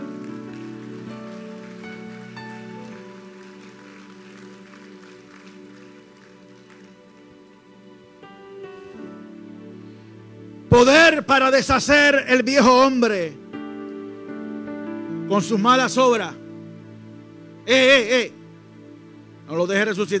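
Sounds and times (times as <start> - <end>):
audience applause: 0.0 - 7.4
speech: 10.8 - 13.4, 15.3 - 16.4, 17.6 - 18.4, 19.5 - 20.1.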